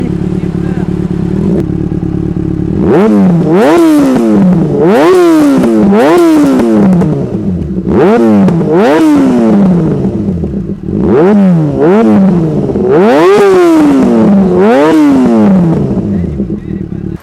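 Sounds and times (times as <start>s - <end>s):
Yamaha FZ6 Akrapovic exhaust: 0.0s - 17.2s.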